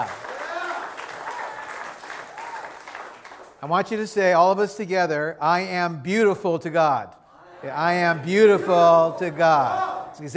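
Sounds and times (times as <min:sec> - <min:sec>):
large audience applause: 0:00.0 - 0:03.6
speech: 0:03.6 - 0:10.3.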